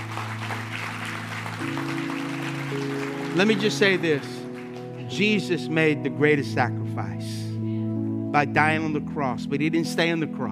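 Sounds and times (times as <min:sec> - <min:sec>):
audience applause: 0:00.0 - 0:05.5
speech: 0:03.4 - 0:04.4, 0:05.1 - 0:07.4, 0:08.3 - 0:10.4.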